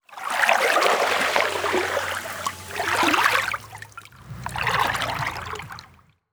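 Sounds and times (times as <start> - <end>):
calm water ambience: 0.0 - 6.3.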